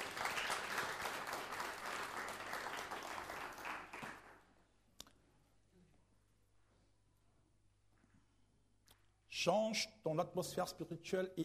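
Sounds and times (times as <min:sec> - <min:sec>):
church congregation applauding and cheering: 0:00.0 - 0:04.5
speech: 0:09.4 - 0:11.4.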